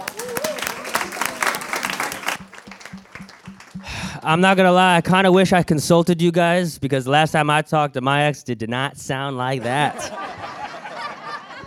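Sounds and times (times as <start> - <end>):
person whooping: 0.0 - 2.1
audience applause: 0.0 - 4.2
speech: 4.2 - 10.2
laughter: 9.6 - 11.6.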